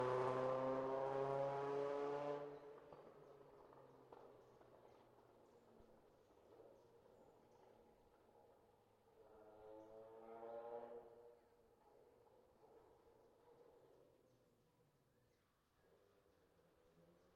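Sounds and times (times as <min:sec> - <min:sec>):
Citroen Xsara WRC rally car passing fast: 0:00.0 - 0:02.8, 0:09.9 - 0:11.2.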